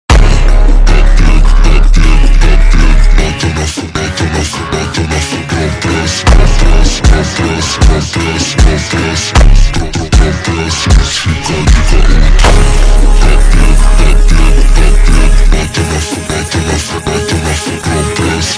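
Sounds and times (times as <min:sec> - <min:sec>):
ultra slowed phonk montagem music: 0:00.1 - 0:18.5.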